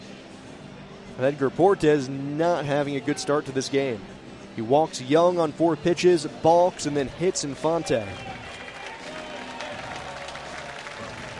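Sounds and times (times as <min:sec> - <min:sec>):
speech: 0:01.2 - 0:08.4
stadium crowd applause: 0:08.0 - 0:11.3.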